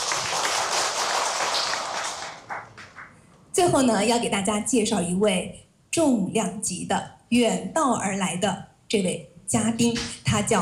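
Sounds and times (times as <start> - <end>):
audience applause: 0.0 - 3.1
speech: 3.6 - 10.6.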